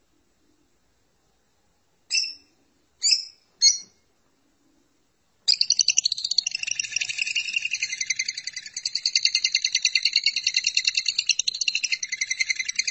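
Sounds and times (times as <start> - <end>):
lovebird rattling trill: 5.5 - 12.9.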